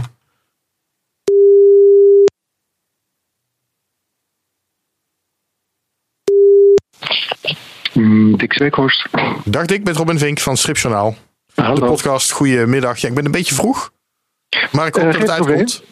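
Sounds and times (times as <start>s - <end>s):
ringback tone on an outgoing phone call: 1.3s - 2.3s, 6.3s - 6.8s
speech: 8.6s - 15.8s.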